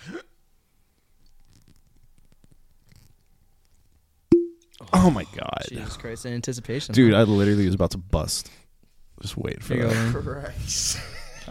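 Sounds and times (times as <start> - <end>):
cork popping out of a bottle: 4.3 - 4.6
speech: 4.8 - 8.6, 9.2 - 11.4.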